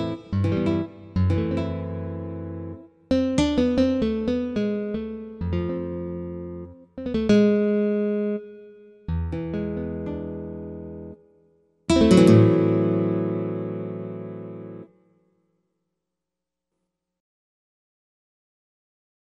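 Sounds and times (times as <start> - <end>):
jazz guitar from Spain: 0.0 - 11.2, 11.9 - 14.9.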